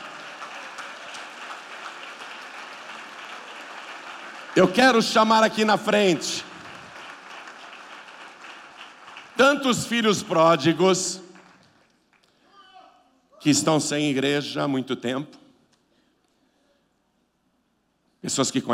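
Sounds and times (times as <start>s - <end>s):
audience applauding in church: 0.0s - 12.4s
speech: 4.6s - 6.5s, 9.6s - 11.3s, 13.4s - 15.4s, 18.3s - 18.7s.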